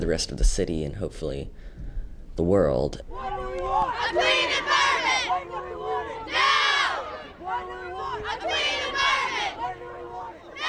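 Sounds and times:
speech: 0:00.0 - 0:01.8, 0:02.4 - 0:04.7
protesters and onlookers cheering at a youth climate march in Portland: 0:03.1 - 0:10.6.

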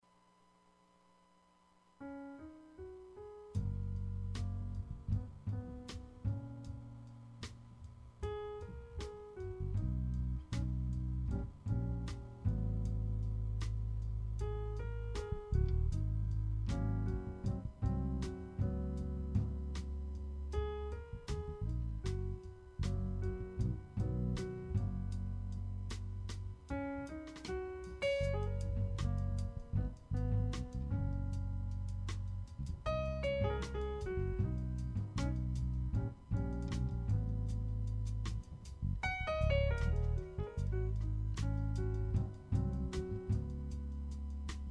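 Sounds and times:
jazz music: 0:02.1 - 0:44.6.

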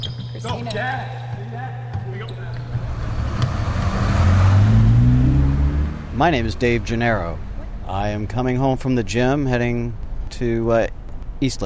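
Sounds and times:
basketballs bouncing on a court during a warm-up: 0:00.0 - 0:04.0
sneakers squeaking: 0:00.0 - 0:04.0
low rumbling hum: 0:00.0 - 0:11.6
speech: 0:00.4 - 0:01.7, 0:06.2 - 0:11.6.

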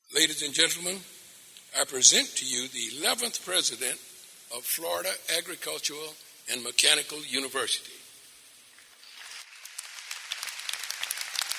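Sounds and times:
speech: 0:00.2 - 0:08.0
crowd clapping: 0:09.1 - 0:11.5
crowd cheering: 0:09.4 - 0:11.5.

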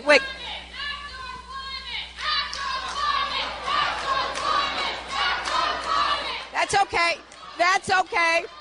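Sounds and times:
crowd shouting and heckling: 0:00.2 - 0:08.5
crowd chanting: 0:01.9 - 0:08.5.

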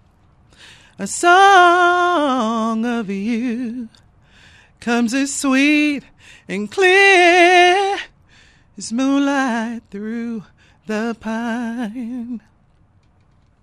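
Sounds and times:
a cappella singing: 0:00.9 - 0:04.0, 0:04.8 - 0:08.1, 0:08.8 - 0:12.4.

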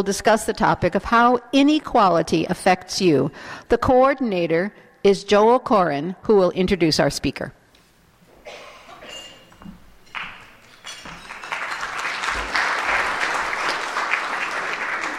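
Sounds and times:
speech: 0:00.0 - 0:07.6
audience applause: 0:11.2 - 0:15.1.

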